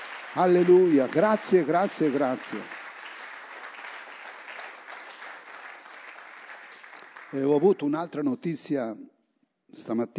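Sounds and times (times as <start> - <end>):
audience applause: 0.0 - 7.7
speech: 0.4 - 2.8, 7.3 - 9.1, 9.7 - 10.1.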